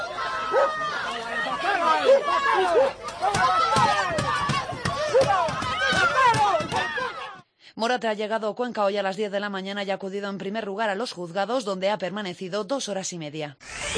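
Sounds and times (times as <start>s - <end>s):
crowd of people shouting: 0.0s - 7.4s
speech: 7.8s - 13.9s.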